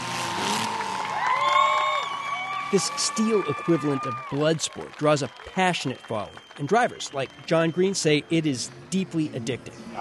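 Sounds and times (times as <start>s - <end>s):
demolition derby fans cheering in packed stands: 0.0s - 9.9s
whoops and whistles: 0.4s - 4.3s
speech: 2.7s - 9.9s.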